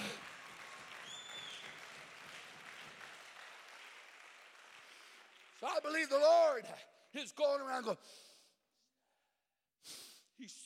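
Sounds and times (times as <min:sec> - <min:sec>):
audience clapping hands: 0:00.0 - 0:07.8
speech: 0:05.6 - 0:08.3, 0:09.8 - 0:10.6.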